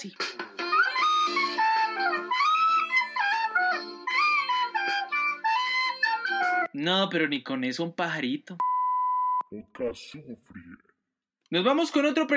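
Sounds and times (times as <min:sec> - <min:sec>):
speech: 0:00.0 - 0:00.4, 0:06.8 - 0:08.7, 0:09.5 - 0:10.9, 0:11.5 - 0:12.3
whistled melody to call a horse: 0:00.6 - 0:06.7.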